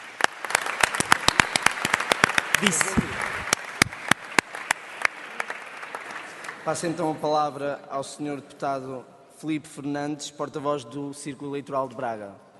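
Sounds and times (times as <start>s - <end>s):
audience applause: 0.0s - 7.0s
speech: 2.6s - 3.3s, 6.6s - 12.4s.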